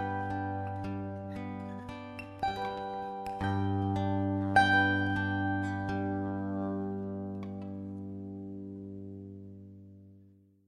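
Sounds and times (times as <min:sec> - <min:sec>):
classical lullaby melody: 0:00.0 - 0:08.0.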